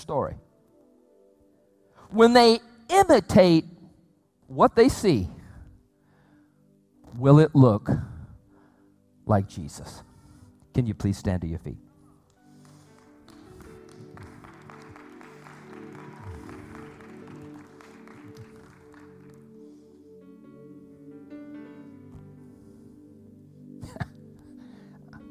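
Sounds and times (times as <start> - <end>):
speech: 0.0 - 0.5, 2.1 - 3.7, 4.5 - 5.4, 7.1 - 8.1, 9.3 - 10.1, 10.8 - 11.8
half-hearted clapping from church audience: 12.3 - 19.8.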